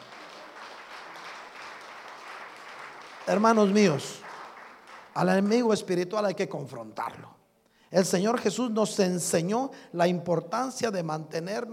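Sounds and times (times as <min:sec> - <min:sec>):
audience applause: 0:00.0 - 0:05.3
speech: 0:03.3 - 0:04.2, 0:05.2 - 0:11.7.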